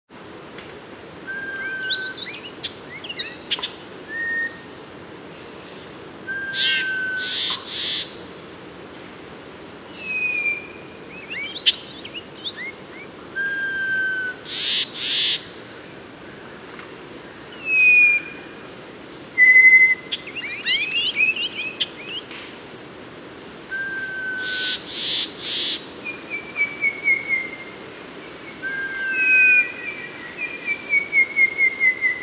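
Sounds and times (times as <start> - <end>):
Mangrove robin singing long whistled notes in Papua New Guinea: 1.2 - 4.7, 6.3 - 8.2, 9.9 - 15.4, 17.5 - 18.5, 19.4 - 22.3, 23.7 - 32.2.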